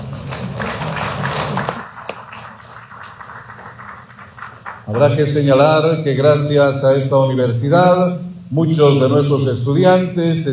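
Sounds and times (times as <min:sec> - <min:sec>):
audience applause: 0:00.0 - 0:05.0
speech: 0:04.9 - 0:10.5.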